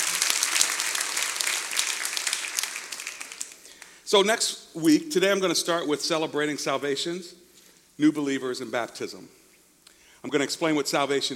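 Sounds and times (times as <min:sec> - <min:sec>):
audience clapping in praise: 0:00.0 - 0:04.0
speech: 0:04.1 - 0:07.4, 0:08.0 - 0:09.4, 0:10.2 - 0:11.3.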